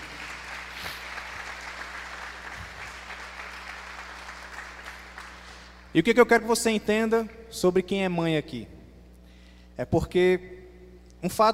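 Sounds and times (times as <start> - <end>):
church audience applause for mothers: 0.0 - 5.9
speech: 6.0 - 8.8, 9.8 - 10.6, 11.2 - 11.5.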